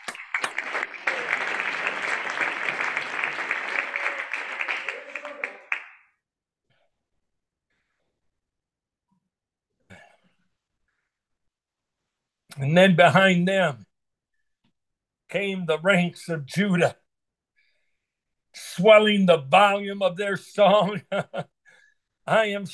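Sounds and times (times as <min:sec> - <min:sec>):
audience clapping: 0:00.0 - 0:06.2
speech: 0:12.6 - 0:13.8, 0:15.3 - 0:17.0, 0:18.8 - 0:21.6, 0:22.3 - 0:22.7.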